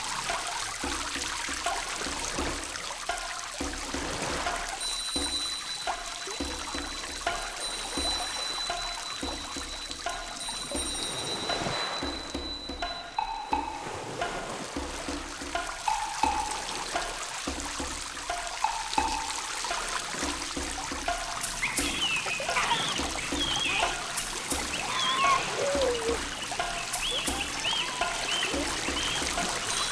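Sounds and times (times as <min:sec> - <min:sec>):
rain forest river flowing: 0:00.0 - 0:29.9
rain in a rain forest: 0:00.0 - 0:29.9
children's voices in a rain forest: 0:21.6 - 0:29.9.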